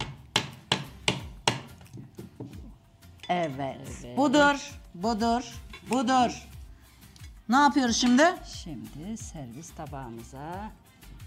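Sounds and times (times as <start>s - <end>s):
clay pot of testi kebab struck to crack it open: 0.0s - 2.8s
speech: 3.3s - 6.5s, 7.5s - 10.8s.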